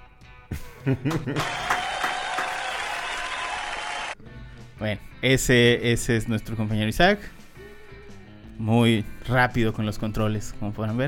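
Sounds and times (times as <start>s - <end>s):
speech: 0.5s - 1.6s, 4.8s - 7.4s, 8.6s - 11.0s
laughter: 0.5s - 3.2s
applause sound effect: 1.1s - 4.2s.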